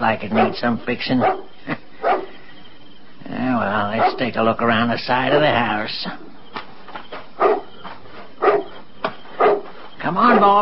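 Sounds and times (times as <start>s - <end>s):
speech: 0.0s - 1.8s, 3.6s - 6.2s, 10.1s - 10.6s
dog barking at night: 0.3s - 2.4s, 4.0s - 4.3s, 7.4s - 7.7s, 8.4s - 8.8s, 9.4s - 10.6s.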